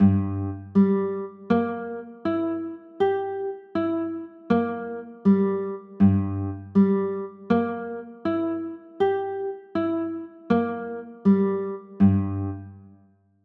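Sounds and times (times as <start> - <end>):
G minor 6 chords: 0.0 - 12.9.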